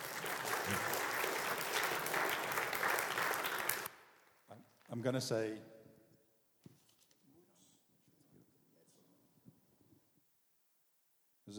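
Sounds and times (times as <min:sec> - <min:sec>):
audience applause welcoming a speaker on stage: 0:00.0 - 0:04.3
speech: 0:05.0 - 0:05.7.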